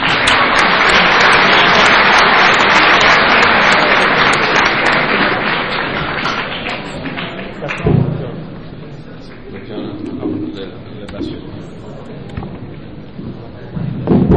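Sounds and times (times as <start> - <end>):
crowd applauding: 0.0 - 8.2.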